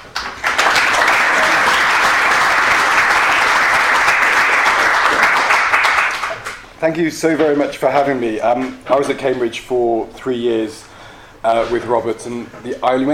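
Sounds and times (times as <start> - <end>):
audience applauding a guest speaker at a lecture event: 0.0 - 6.8
speech: 6.8 - 13.1.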